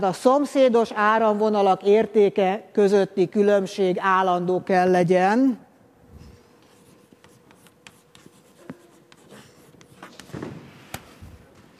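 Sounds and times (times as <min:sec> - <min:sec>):
speech: 0:00.0 - 0:05.6
pen or chalk drawing potential lines on a board: 0:06.6 - 0:11.0.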